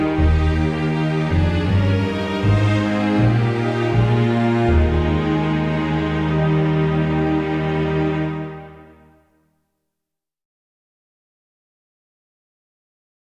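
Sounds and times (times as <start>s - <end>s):
national anthem: 0.0s - 8.8s.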